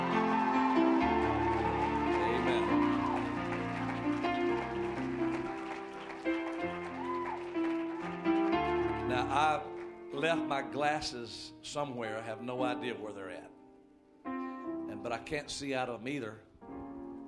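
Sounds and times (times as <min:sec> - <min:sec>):
audience hand clapping: 0:00.0 - 0:10.1
speech: 0:09.4 - 0:13.6, 0:15.0 - 0:16.5.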